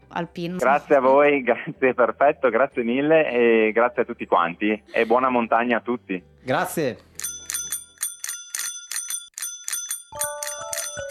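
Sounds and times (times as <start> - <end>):
speech: 0.2 - 7.1
telephone bell ringing: 7.2 - 11.0.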